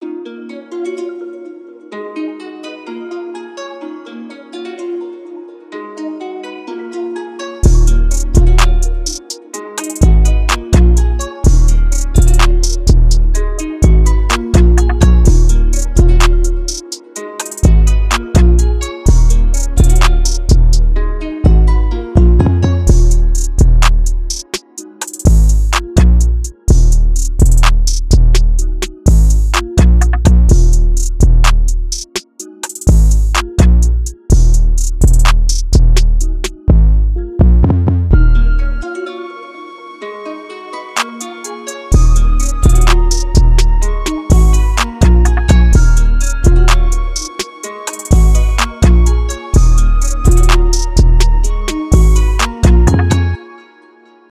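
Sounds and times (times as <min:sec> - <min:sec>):
car bass: 0:07.6 - 0:08.9, 0:10.0 - 0:16.7, 0:17.7 - 0:24.3, 0:25.3 - 0:32.0, 0:32.9 - 0:38.8, 0:42.0 - 0:47.1, 0:48.1 - 0:53.3.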